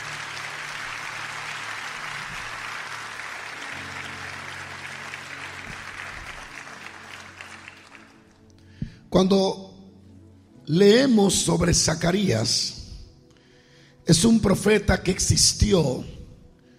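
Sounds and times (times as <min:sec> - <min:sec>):
audience applauding loudly: 0:00.0 - 0:08.5
speech: 0:09.2 - 0:09.6, 0:10.7 - 0:12.8, 0:14.1 - 0:16.2.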